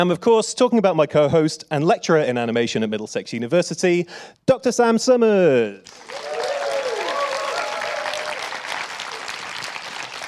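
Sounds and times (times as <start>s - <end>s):
speech: 0.0s - 6.4s
audience applause: 5.9s - 10.2s.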